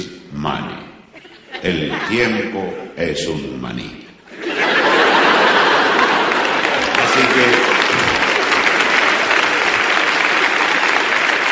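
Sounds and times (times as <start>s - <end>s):
speech: 0.0s - 0.8s, 1.6s - 4.0s, 7.2s - 7.8s
laughter: 1.1s - 2.9s, 4.3s - 11.5s
audience applause: 4.5s - 11.5s.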